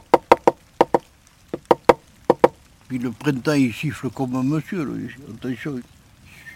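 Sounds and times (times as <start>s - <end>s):
imitated woodpecker knocking on dry wood: 0.0s - 2.6s
speech: 2.9s - 6.0s.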